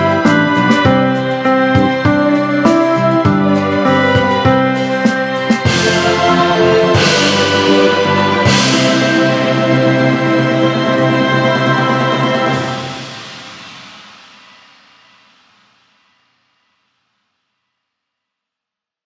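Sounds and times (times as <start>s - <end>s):
piano and orchestra playing: 0.0s - 13.5s.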